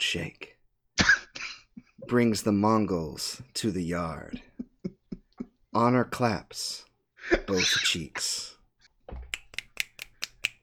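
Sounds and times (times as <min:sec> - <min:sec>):
speech: 0:00.1 - 0:00.5, 0:02.1 - 0:04.5, 0:05.8 - 0:08.5
finger snapping: 0:09.3 - 0:10.6.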